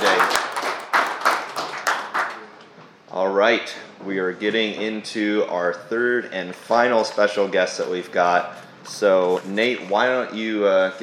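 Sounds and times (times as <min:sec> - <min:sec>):
audience applause: 0:00.0 - 0:02.6
speech: 0:03.4 - 0:11.0.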